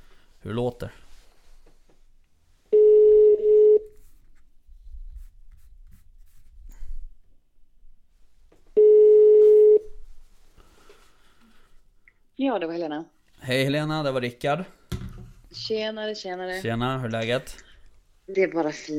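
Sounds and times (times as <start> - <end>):
speech: 0.4 - 1.0, 12.4 - 14.8, 15.5 - 17.7, 18.3 - 18.9
telephone ringback tones: 2.7 - 3.9, 8.8 - 9.9.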